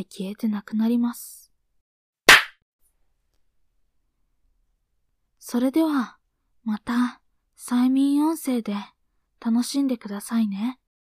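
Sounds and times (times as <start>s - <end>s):
speech: 0.0s - 1.4s, 5.4s - 10.8s
single sharp hand clap ending a hypnosis session: 2.3s - 2.5s.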